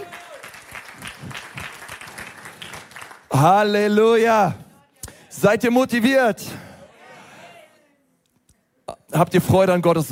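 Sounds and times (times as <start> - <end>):
crowd applause: 0.0 - 3.4
speech: 3.3 - 4.6, 5.4 - 6.6, 9.2 - 10.1.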